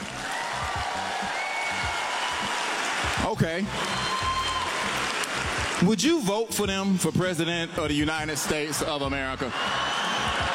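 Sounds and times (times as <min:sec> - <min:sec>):
audience clapping: 0:00.0 - 0:06.2, 0:08.4 - 0:10.5
speech: 0:03.2 - 0:04.0, 0:05.8 - 0:09.8.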